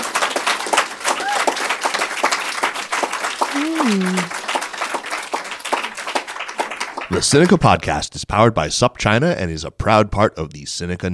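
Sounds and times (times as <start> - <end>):
audience applause: 0.0 - 7.8
speech: 3.6 - 4.4, 7.1 - 11.1.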